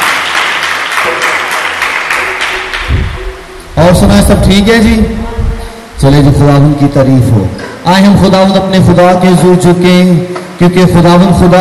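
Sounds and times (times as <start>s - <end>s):
loud audience applause: 0.0s - 3.2s
speech: 3.8s - 5.2s, 6.0s - 11.6s.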